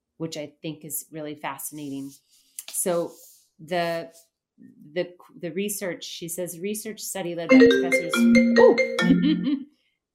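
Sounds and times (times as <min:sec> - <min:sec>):
speech: 0:00.2 - 0:09.7
phone ringing sound effect: 0:07.5 - 0:09.4.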